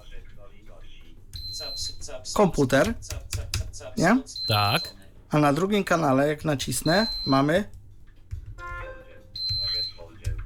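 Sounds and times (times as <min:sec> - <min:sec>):
clock beeping: 0:01.4 - 0:02.1, 0:04.2 - 0:05.0, 0:06.7 - 0:07.7, 0:08.6 - 0:10.2
speech: 0:02.1 - 0:07.8.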